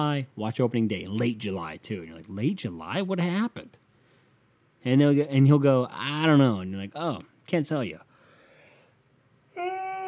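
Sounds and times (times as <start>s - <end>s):
speech: 0.0s - 3.8s, 4.8s - 8.1s
person yawning: 9.5s - 10.0s.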